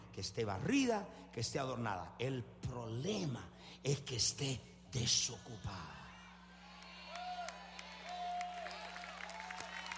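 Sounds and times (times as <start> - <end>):
speech: 0.2 - 6.0
audience applause: 7.1 - 9.9.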